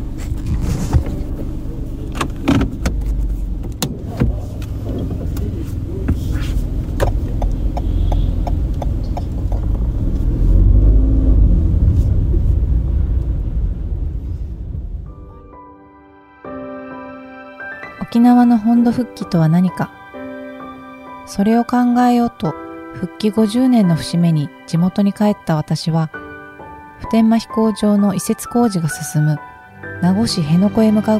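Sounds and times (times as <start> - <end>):
car engine rumbling as the car drives off: 0.0 - 15.8
speech: 18.2 - 20.0, 21.3 - 26.2, 27.0 - 31.1.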